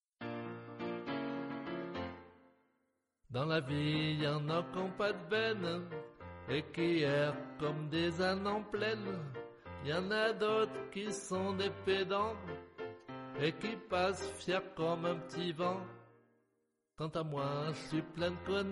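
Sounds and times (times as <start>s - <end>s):
piano: 0.2s - 18.7s.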